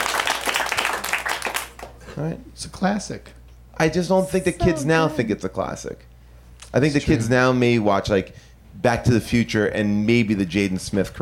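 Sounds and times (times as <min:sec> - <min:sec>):
audience applause: 0:00.0 - 0:02.0
speech: 0:02.2 - 0:06.1, 0:06.7 - 0:11.1.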